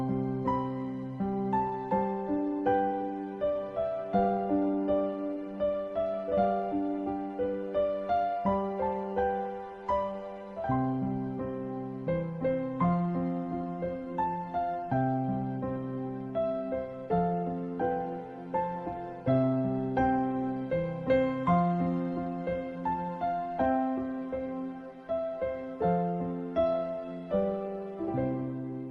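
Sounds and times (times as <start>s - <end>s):
lullaby melody: 0.0s - 28.9s.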